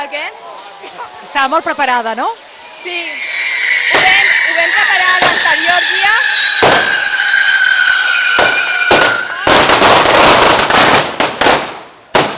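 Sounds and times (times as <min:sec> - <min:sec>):
speech: 0:00.0 - 0:03.4, 0:04.0 - 0:07.2
shrill whistling squeal: 0:02.4 - 0:10.5
firecracker bangs of a castell de petards at a devils' dance: 0:08.4 - 0:12.3.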